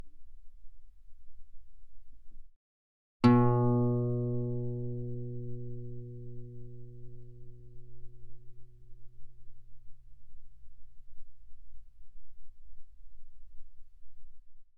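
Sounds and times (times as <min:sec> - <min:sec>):
guitar played fortissimo on the E string: 0:03.2 - 0:09.4.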